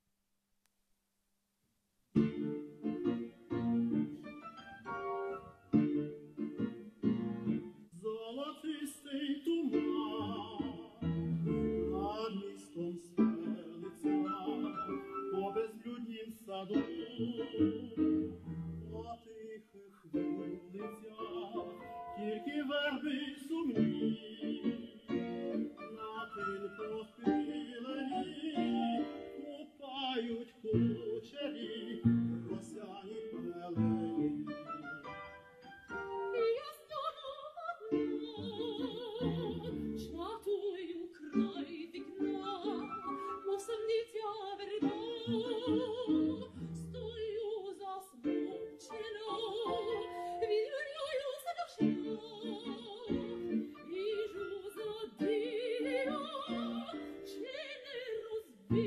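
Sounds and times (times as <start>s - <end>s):
Ukrainian tango music: 2.2s - 58.8s.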